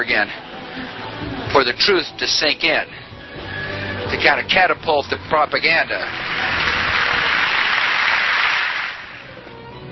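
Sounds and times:
speech: 0:00.0 - 0:03.0, 0:04.1 - 0:06.7
applause: 0:06.0 - 0:09.3.

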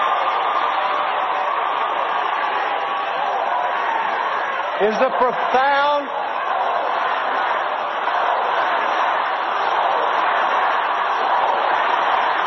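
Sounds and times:
crowd shouting at a John Edwards rally in Grand Rapids, Michigan: 0:00.0 - 0:12.4
speech: 0:04.8 - 0:06.3.

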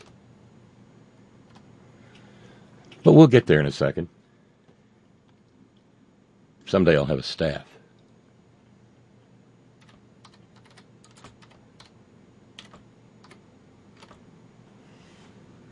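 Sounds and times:
typing a search into a computer keyboard: 0:01.5 - 0:01.7, 0:09.8 - 0:12.0, 0:12.6 - 0:13.4, 0:14.0 - 0:14.2
speech: 0:03.0 - 0:04.2, 0:06.7 - 0:07.8.

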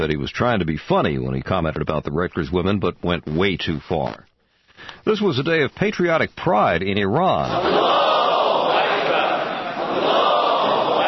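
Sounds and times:
speech: 0:00.0 - 0:08.0
large crowd cheering and shouting in celebration: 0:07.5 - 0:11.0.

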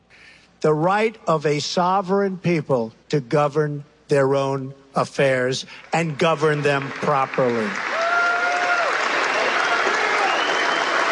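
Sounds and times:
speech: 0:00.6 - 0:07.9
audience clapping at a political rally: 0:05.8 - 0:11.1.

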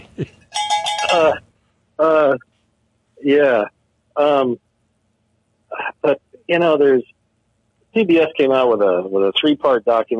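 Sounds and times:
speech: 0:00.2 - 0:00.4, 0:03.3 - 0:04.7, 0:06.0 - 0:07.2, 0:07.9 - 0:10.1
cowbell sound effect: 0:00.5 - 0:01.4.

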